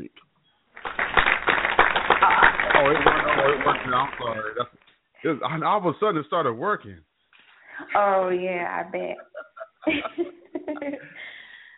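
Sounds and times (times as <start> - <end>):
hand clapping sound effect: 0.8 - 4.7
laughter: 1.9 - 4.7, 8.9 - 11.5
speech: 2.8 - 7.1, 7.8 - 11.2.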